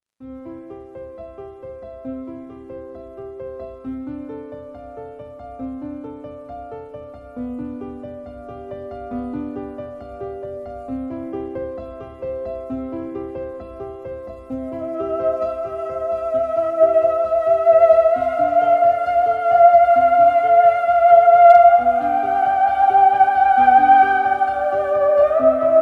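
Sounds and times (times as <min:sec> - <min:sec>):
theremin: 0:14.4 - 0:25.8.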